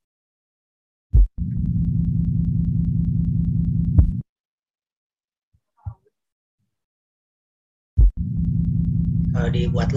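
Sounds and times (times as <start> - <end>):
heartbeat thump: 1.1 - 4.2, 8.0 - 9.4
speech: 9.4 - 9.9.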